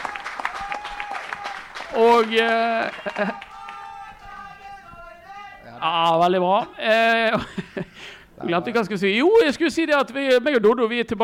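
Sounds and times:
audience applause: 0.0s - 4.6s
speech: 1.9s - 3.5s, 5.8s - 11.2s
laughter: 2.5s - 4.0s, 7.1s - 8.0s.

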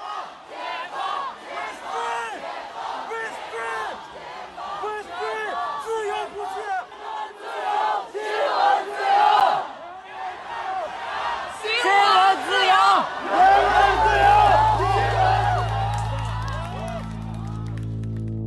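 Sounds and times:
protest crowd chanting slogans: 0.0s - 16.2s
steady low drone: 13.4s - 18.4s.

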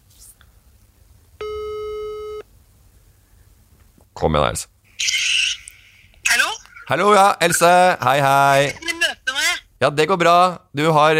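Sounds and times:
telephone ringback tone: 1.4s - 2.4s
speech: 4.2s - 5.2s, 6.9s - 8.8s, 9.8s - 11.1s.

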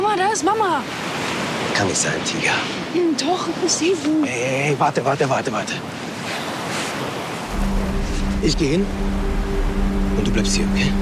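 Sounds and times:
ocean surf washing onto a beach: 0.0s - 11.0s
speech: 0.4s - 1.1s, 1.8s - 6.0s, 8.4s - 9.2s, 10.2s - 11.0s
low rumbling wind-like noise: 7.4s - 11.0s.

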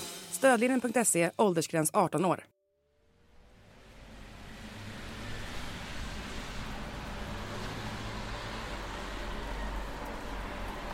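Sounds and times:
speech: 0.5s - 2.6s
busy city street traffic roar with rumbling engines: 3.0s - 10.9s.

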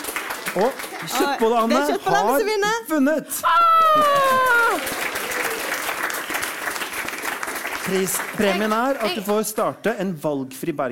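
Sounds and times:
audience clapping: 0.0s - 2.4s, 4.0s - 9.8s
speech: 0.5s - 5.1s, 7.9s - 10.9s.

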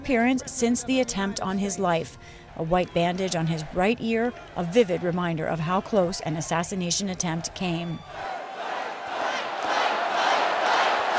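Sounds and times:
speech: 0.0s - 8.4s
crowd cheering and chanting: 2.8s - 11.1s.

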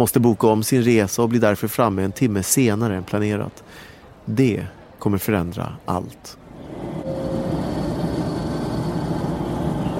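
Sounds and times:
speech: 0.0s - 6.4s
train rolling into Linköping station: 6.4s - 9.9s.

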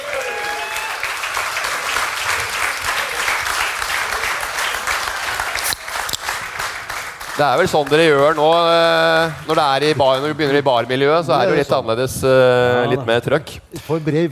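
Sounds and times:
audience applause: 0.0s - 11.0s
speech: 7.4s - 14.3s.

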